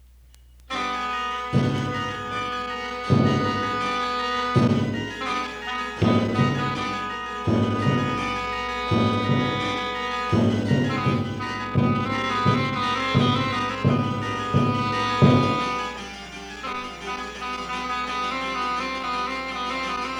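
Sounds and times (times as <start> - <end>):
harpsichord: 0.7 - 20.1.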